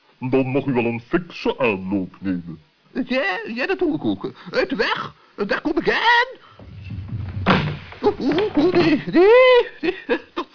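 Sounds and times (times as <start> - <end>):
speech: 0.2 - 6.7, 8.1 - 10.5
heavy thud of someone falling on slippery stairs: 6.6 - 9.2.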